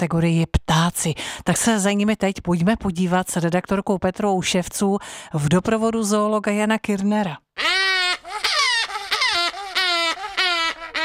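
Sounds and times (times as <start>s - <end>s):
speech: 0.0s - 7.8s
grey-cheeked hornbill calling: 7.6s - 11.0s.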